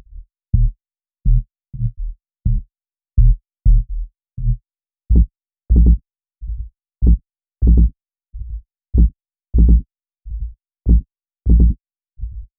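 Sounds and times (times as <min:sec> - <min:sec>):
deep house bassline: 0:03.2 - 0:06.0, 0:07.0 - 0:07.9, 0:08.5 - 0:12.4.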